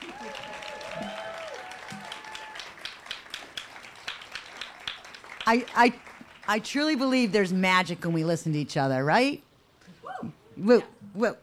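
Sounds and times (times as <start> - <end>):
audience clapping: 0.0 - 7.2
speech: 5.5 - 9.5, 10.2 - 11.4.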